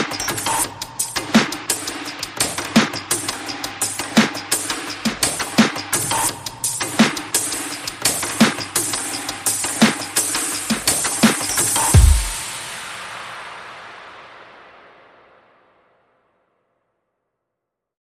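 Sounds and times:
percussion: 0.0s - 15.8s
bass: 11.8s - 12.4s.

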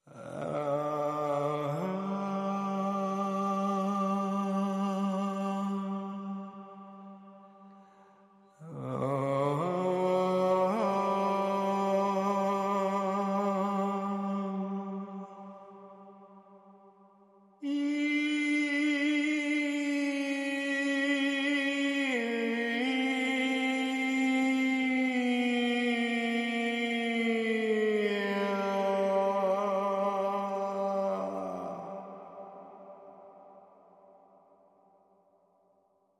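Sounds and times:
vocals: 0.0s - 36.1s.

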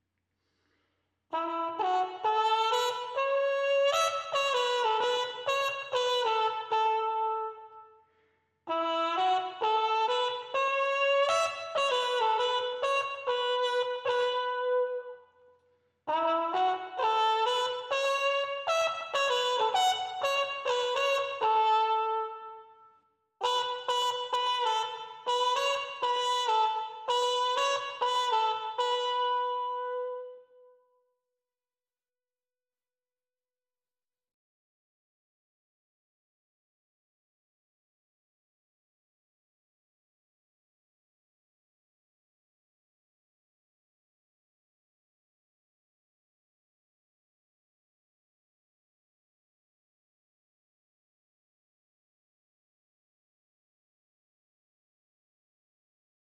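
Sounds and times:
trumpet: 1.3s - 8.0s, 8.7s - 15.5s, 16.1s - 30.8s.

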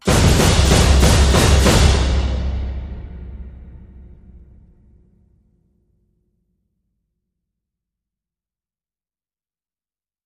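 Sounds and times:
percussion: 0.0s - 5.3s.

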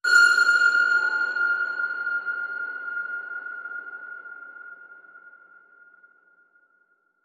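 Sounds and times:
submarine sonar ping: 0.0s - 7.2s.

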